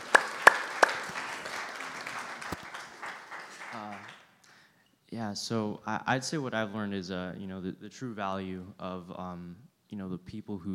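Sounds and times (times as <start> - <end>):
audience applause: 0.0 - 4.2
speech: 5.2 - 10.7.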